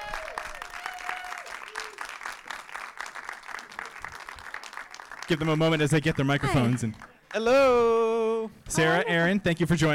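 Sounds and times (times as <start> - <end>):
audience applause welcoming two guests onto a live show: 0.0 - 7.3
speech: 5.3 - 9.9.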